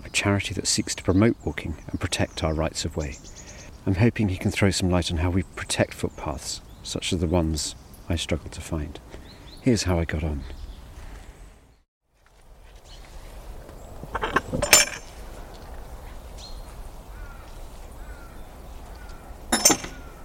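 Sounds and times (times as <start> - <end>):
speech: 0.2 - 10.6
gate creaking and clinking in quiet woodland: 14.1 - 15.1, 19.5 - 20.2.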